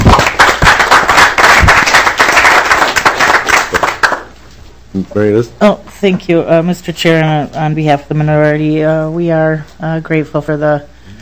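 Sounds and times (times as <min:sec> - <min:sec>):
group applauding the staff: 0:00.0 - 0:04.3
speech: 0:05.0 - 0:10.9.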